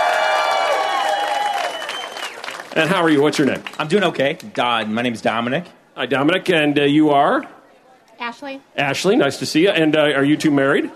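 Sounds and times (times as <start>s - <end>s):
crowd whooping and shouting: 0.0s - 2.6s
crowd applauding: 0.0s - 4.5s
speech: 2.8s - 7.6s, 8.3s - 10.9s.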